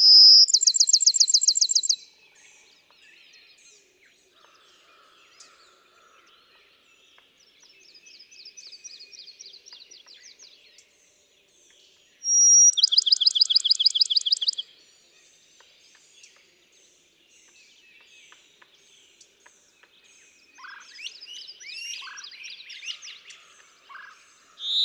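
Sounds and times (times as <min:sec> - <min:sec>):
Bachman's sparrow whistle and ringing trill: 0:00.0 - 0:02.0, 0:12.2 - 0:14.6, 0:24.6 - 0:24.8
other birds with scattered chirps: 0:00.0 - 0:02.0, 0:12.2 - 0:14.6, 0:24.0 - 0:24.8.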